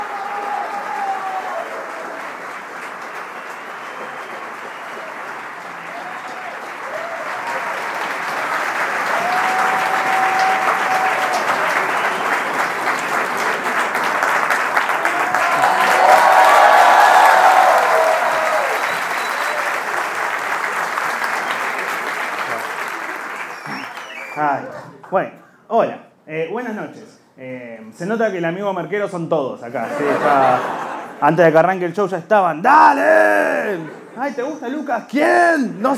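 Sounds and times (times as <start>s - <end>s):
faint voices and whoops: 0.0s - 2.2s, 9.1s - 11.8s, 15.1s - 19.9s
audience applause: 0.0s - 24.6s
speech: 25.1s - 25.4s, 28.0s - 35.9s
laughter: 29.7s - 31.4s, 33.6s - 34.6s.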